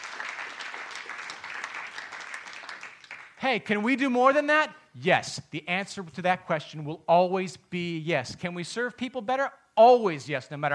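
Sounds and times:
audience applause: 0.0s - 3.4s
speech: 3.4s - 10.7s.

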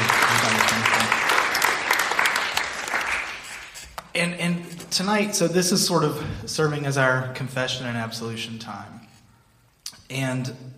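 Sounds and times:
audience applause: 0.0s - 3.8s
speech: 5.0s - 9.1s, 10.1s - 10.7s.

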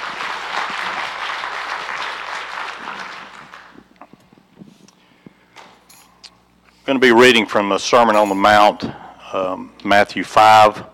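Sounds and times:
audience applause, hand clapping: 0.0s - 3.8s
speech: 6.9s - 10.9s.

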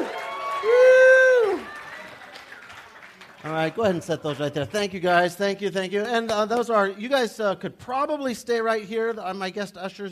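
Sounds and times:
audience cheering: 0.0s - 4.4s
speech: 3.6s - 10.0s.

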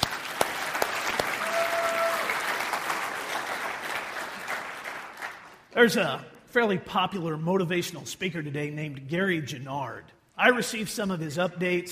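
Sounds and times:
audience applause: 0.0s - 5.6s
speech: 5.8s - 11.9s.

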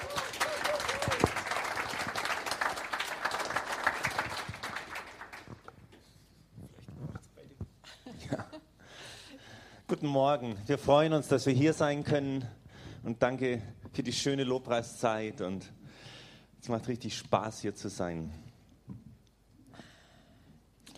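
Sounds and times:
audience applause: 0.0s - 5.7s
speech: 10.0s - 15.8s, 16.6s - 18.4s.

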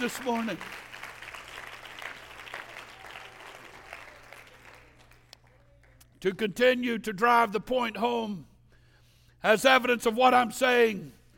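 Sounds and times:
speech: 0.0s - 0.9s, 6.2s - 8.5s, 9.4s - 11.2s
audience clapping hands: 0.0s - 6.5s.

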